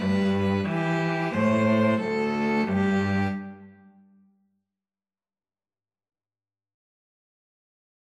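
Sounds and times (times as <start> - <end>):
string trio playing: 0.0 - 4.0.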